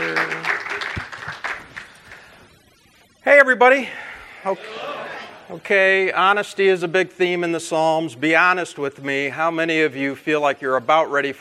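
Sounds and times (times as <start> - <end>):
crowd at the 2019 LCMS Youth Gathering clapping to welcome a speaker: 0.0 - 2.4
speech: 3.4 - 4.9, 5.5 - 11.3.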